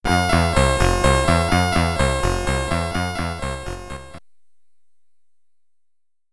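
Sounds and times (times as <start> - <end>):
SID chip music in stereo: 0.0 - 4.2.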